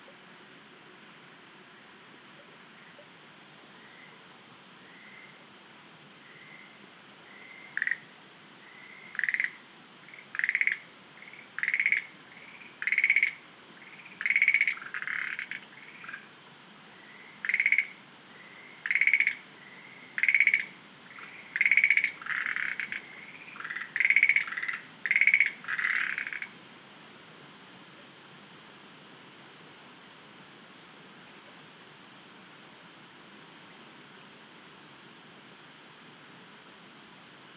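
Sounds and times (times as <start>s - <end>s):
Schlegel's green tree frogs croaking: 3.7s - 4.2s, 4.8s - 5.4s, 6.2s - 26.6s.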